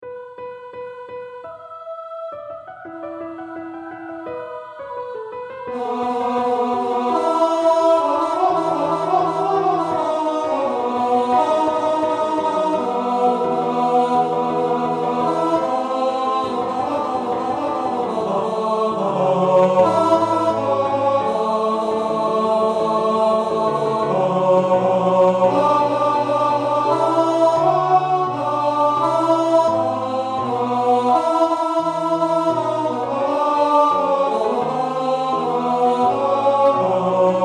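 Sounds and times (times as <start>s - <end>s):
tenor singing: 4.2s - 37.4s.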